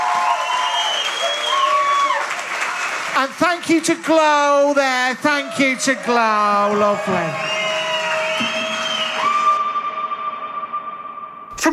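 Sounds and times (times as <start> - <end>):
faint whistles and cheers: 0.0 - 3.2, 6.7 - 11.2
crowd applauding: 0.0 - 9.6
speech: 3.2 - 7.6.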